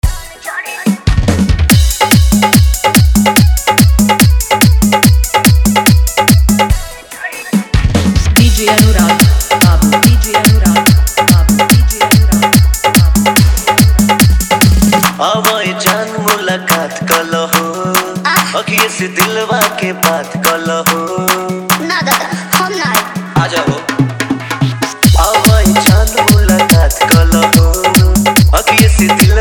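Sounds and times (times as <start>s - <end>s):
Bhojpuri hard dholak bass mix: 0.0s - 29.4s.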